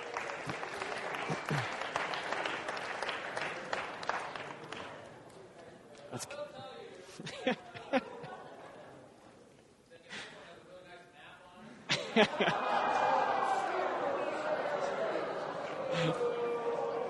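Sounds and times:
audience applause: 0.0s - 5.2s, 12.2s - 17.0s
laughter: 0.5s - 2.0s, 7.1s - 9.2s, 11.9s - 16.6s.

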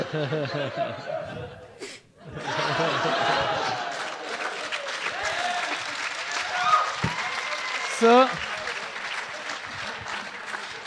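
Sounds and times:
laughter: 0.0s - 10.8s
speech: 0.1s - 3.2s, 8.0s - 8.5s
applause: 3.0s - 10.8s.

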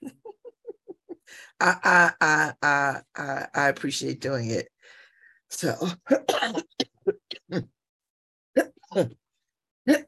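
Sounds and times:
speech: 1.3s - 4.7s, 5.5s - 6.7s, 7.5s - 7.8s, 9.0s - 9.2s
asthma cough: 5.8s - 7.6s.

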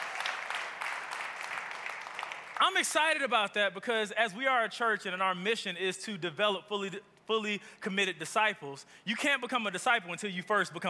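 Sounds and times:
audience clapping: 0.0s - 3.1s
speech: 2.6s - 10.8s.

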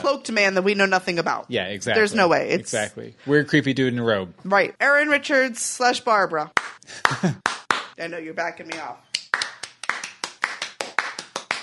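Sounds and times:
speech: 0.0s - 9.1s
hand clapping: 6.5s - 8.0s, 8.7s - 11.6s.

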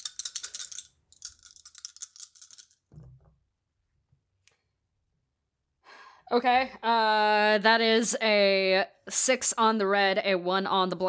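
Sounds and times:
dice being rolled: 0.0s - 2.9s
speech: 6.3s - 11.0s.

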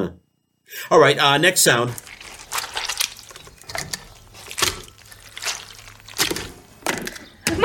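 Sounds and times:
speech: 0.0s - 2.6s
wringing out a custard-filled flannel: 1.7s - 7.5s.

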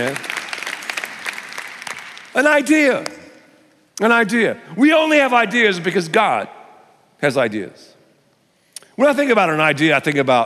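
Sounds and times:
speech: 0.0s - 0.3s, 2.4s - 3.2s, 4.0s - 6.6s, 7.2s - 7.9s, 9.0s - 10.4s
audience applause: 0.0s - 2.8s.

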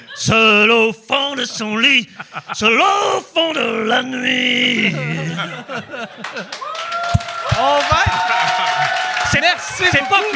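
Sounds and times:
speech: 0.2s - 10.3s
laughter: 1.3s - 3.3s, 4.6s - 10.3s
audience applauding: 6.0s - 10.3s.

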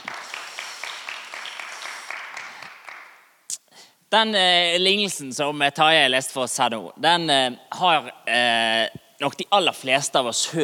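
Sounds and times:
audience applause: 0.0s - 3.2s
speech: 4.1s - 10.6s.

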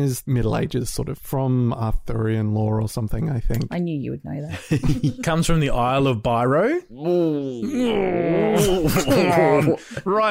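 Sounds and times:
speech: 0.0s - 10.2s
laughter: 4.5s - 5.9s, 8.2s - 10.2s
person groaning in mock disapproval at a pun: 6.9s - 10.0s.

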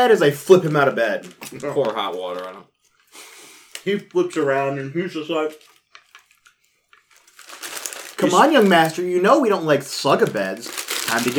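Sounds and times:
soft irregular crinkling with crackle: 0.0s - 4.4s, 5.4s - 11.3s
speech: 0.0s - 5.7s, 8.2s - 11.3s.

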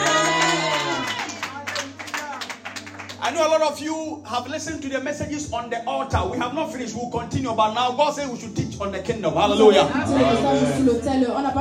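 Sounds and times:
audience clapping hands: 0.0s - 3.5s
speech: 3.3s - 11.5s.

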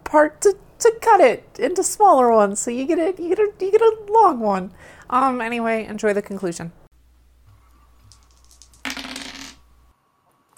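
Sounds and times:
speech: 0.1s - 6.8s
die rolling in a tabletop role-playing game: 8.1s - 9.6s.

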